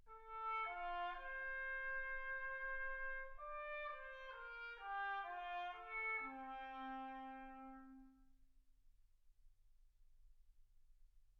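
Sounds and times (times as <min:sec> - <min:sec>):
trumpet: 0:00.1 - 0:08.3.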